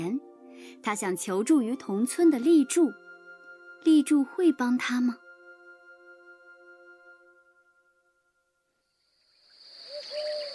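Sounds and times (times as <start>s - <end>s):
speech: 0.2s - 3.0s, 3.8s - 5.2s
owl hooting at night: 9.6s - 10.5s.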